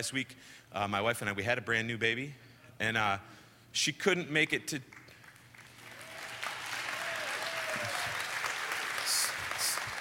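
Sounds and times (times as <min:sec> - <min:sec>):
speech: 0:00.0 - 0:05.0
audience applause: 0:05.5 - 0:09.9.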